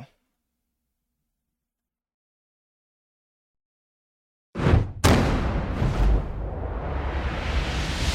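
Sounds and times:
booming cinematic hits in a video game trailer intro: 4.6 - 8.1
sustained rushing whoosh: 5.9 - 8.1.

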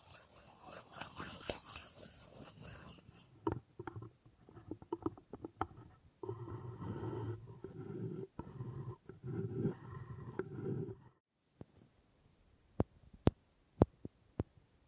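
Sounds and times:
dry scratching and rubbing on wood: 0.0 - 11.0.

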